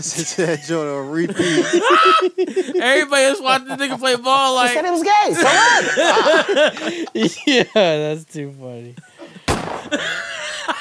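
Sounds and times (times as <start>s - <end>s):
laughter: 0.0s - 8.0s, 9.0s - 10.7s
speech: 0.0s - 9.1s, 9.9s - 10.2s
gunshot sound effect: 9.5s - 10.0s.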